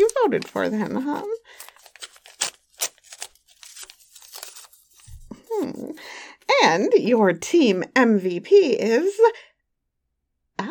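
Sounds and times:
paper envelope torn open by hand: 0:00.0 - 0:05.3
speech: 0:00.3 - 0:01.6, 0:06.6 - 0:09.5.

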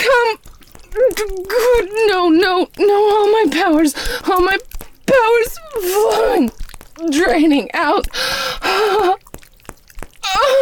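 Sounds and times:
speech: 0:01.2 - 0:09.2
woman gasping: 0:04.0 - 0:04.3, 0:08.1 - 0:09.2.

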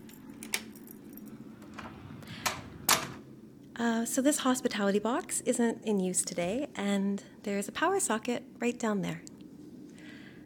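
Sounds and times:
keys jangling: 0:00.0 - 0:01.8
door unlocking: 0:00.0 - 0:03.2
speech: 0:03.8 - 0:09.3.

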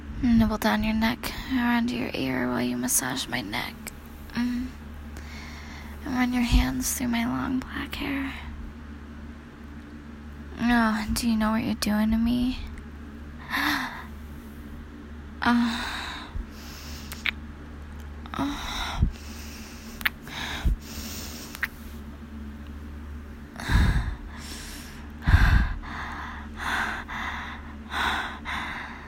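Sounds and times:
speech: 0:00.2 - 0:03.8, 0:04.4 - 0:04.8, 0:06.0 - 0:08.5, 0:10.6 - 0:12.6, 0:15.4 - 0:16.0
hot heavy breathing into the ear: 0:04.4 - 0:06.0, 0:15.4 - 0:17.3, 0:18.3 - 0:21.7, 0:23.5 - 0:29.0.

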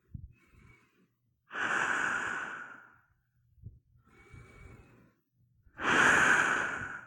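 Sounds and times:
deep breaths through a gas mask with slight whistling: 0:00.3 - 0:03.0, 0:04.0 - 0:05.2, 0:05.8 - 0:07.0.

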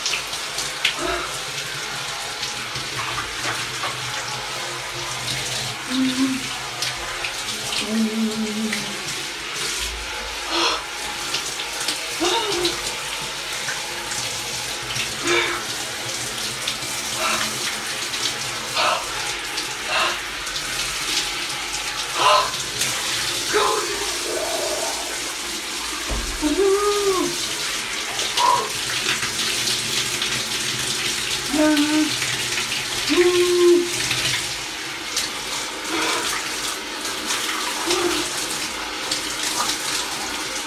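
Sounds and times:
cold shower water running: 0:00.0 - 0:40.6
person moaning: 0:01.0 - 0:01.4, 0:07.8 - 0:09.0, 0:12.2 - 0:12.8, 0:15.2 - 0:15.7, 0:17.2 - 0:17.6, 0:18.8 - 0:19.2, 0:19.9 - 0:20.2, 0:22.2 - 0:22.6, 0:23.5 - 0:25.2, 0:26.4 - 0:27.4.

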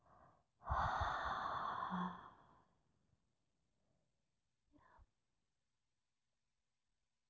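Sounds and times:
slow breathing in through the nose and out through the mouth: 0:00.0 - 0:02.7.

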